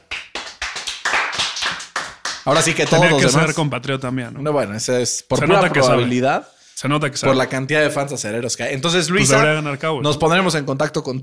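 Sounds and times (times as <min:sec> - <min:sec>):
hand clapping: 0:00.0 - 0:03.3
speech: 0:02.4 - 0:11.2.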